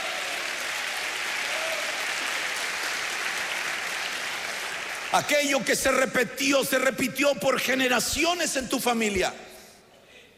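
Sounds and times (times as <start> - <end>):
crowd clapping: 0.0 - 6.1
speech: 5.1 - 9.5.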